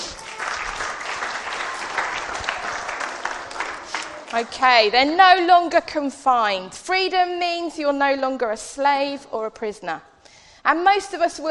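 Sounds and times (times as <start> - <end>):
audience applause: 0.0 - 4.8
speech: 4.3 - 10.1, 10.7 - 11.4.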